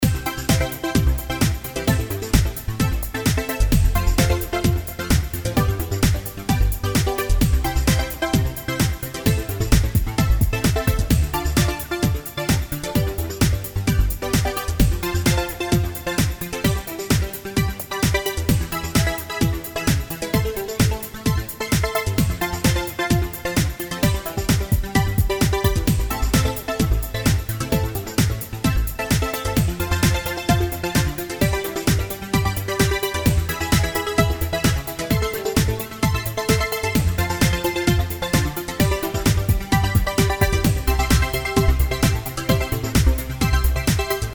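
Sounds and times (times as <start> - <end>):
blissful trance music: 0.0 - 44.3.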